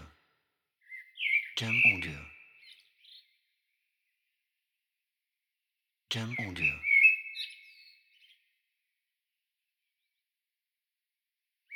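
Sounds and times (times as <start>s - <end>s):
speech: 1.6s - 2.3s, 6.1s - 6.8s
bird whistled chirp: 6.8s - 8.1s.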